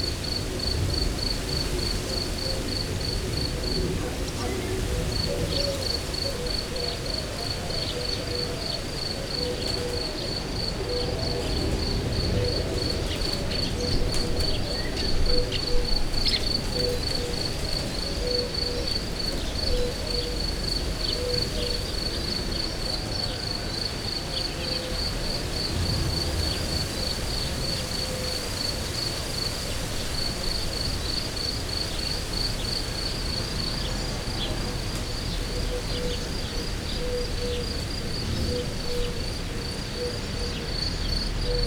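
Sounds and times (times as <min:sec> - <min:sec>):
cricket chirping: 0:00.0 - 0:41.6.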